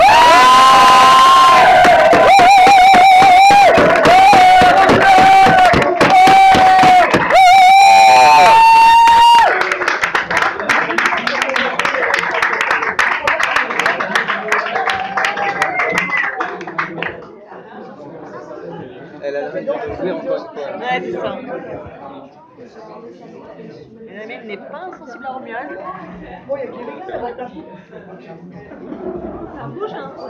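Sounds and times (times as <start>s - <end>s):
audience applauding and cheering loudly: 0.0s - 17.0s.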